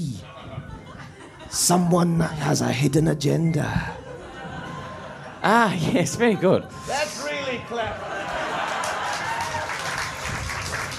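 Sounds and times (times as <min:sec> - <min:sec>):
laughter: 0:00.0 - 0:02.4, 0:03.6 - 0:10.9
speech: 0:01.5 - 0:04.0, 0:05.4 - 0:08.2
audience applause: 0:08.0 - 0:10.9.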